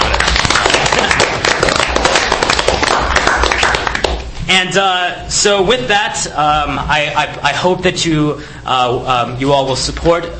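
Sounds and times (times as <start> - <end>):
applause: 0.0 - 4.3
speech: 4.6 - 10.3.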